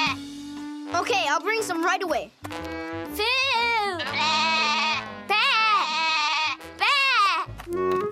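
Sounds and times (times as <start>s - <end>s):
goat bleating for food: 0.0s - 0.2s, 4.0s - 7.5s
speech: 0.9s - 3.5s.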